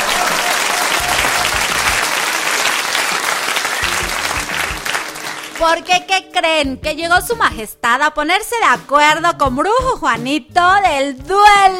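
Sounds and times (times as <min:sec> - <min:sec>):
audience applause: 0:00.0 - 0:06.0
speech: 0:05.6 - 0:11.7.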